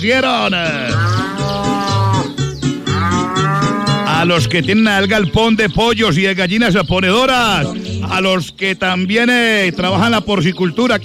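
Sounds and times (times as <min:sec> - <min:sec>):
speech: 0:00.0 - 0:01.6, 0:04.2 - 0:11.0
cow mooing: 0:00.4 - 0:04.6.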